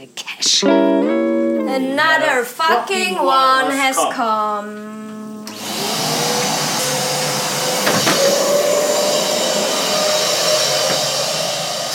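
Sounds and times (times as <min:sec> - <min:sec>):
speech: 0:00.0 - 0:01.1, 0:01.8 - 0:05.2
vacuum cleaner sucking up crumbs of an organic rice cake from the floor: 0:03.3 - 0:11.9.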